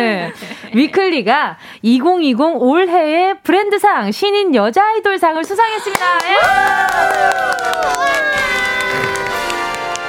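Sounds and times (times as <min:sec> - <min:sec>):
laughter: 0:00.0 - 0:01.0, 0:05.7 - 0:06.4
speech: 0:00.0 - 0:08.5
fanfare sound effect: 0:08.2 - 0:10.0.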